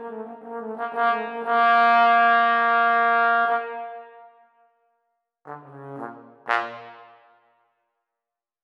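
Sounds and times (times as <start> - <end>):
trombone: 0.1 - 3.9, 5.5 - 7.4.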